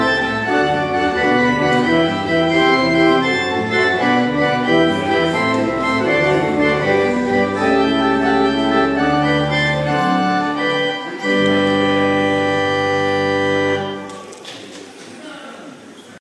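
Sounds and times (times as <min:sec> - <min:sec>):
organ recital in a church in North Yorkshire: 0:00.0 - 0:14.4.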